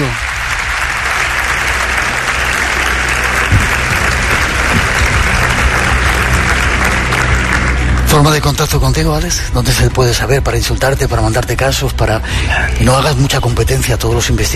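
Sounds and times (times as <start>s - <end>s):
audience applause: 0.0s - 9.0s
speech: 8.2s - 14.5s.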